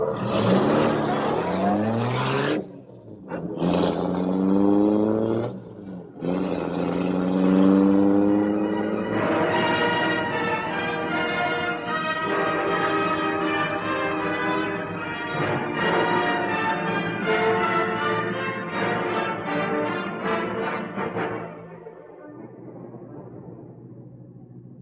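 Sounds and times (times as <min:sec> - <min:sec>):
Black Beauty car engine roaring to life and speeding off: 0:00.0 - 0:24.7.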